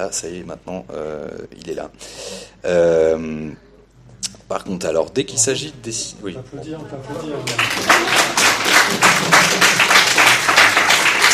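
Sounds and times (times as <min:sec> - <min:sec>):
speech: 0:00.0 - 0:09.9
audience applause: 0:07.4 - 0:11.3.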